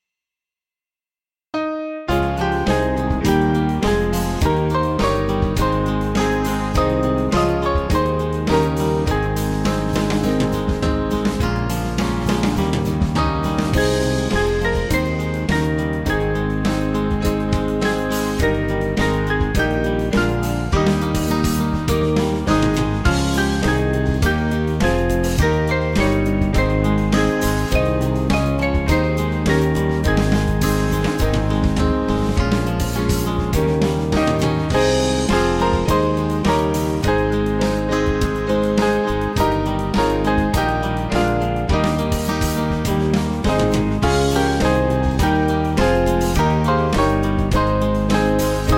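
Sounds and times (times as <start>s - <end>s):
band backing track for churches: 2.1s - 48.7s.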